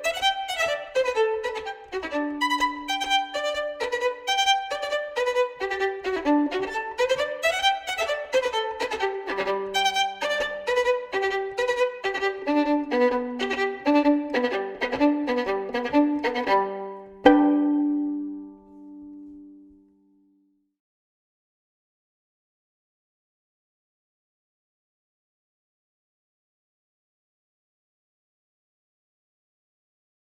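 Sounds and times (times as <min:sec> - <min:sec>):
violin playing an etude: 0:00.0 - 0:19.7.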